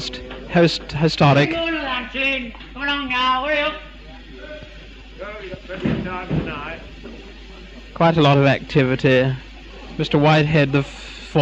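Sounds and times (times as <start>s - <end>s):
speech: 0.0s - 3.9s, 8.0s - 11.4s
train carriage doors slamming: 5.7s - 6.9s.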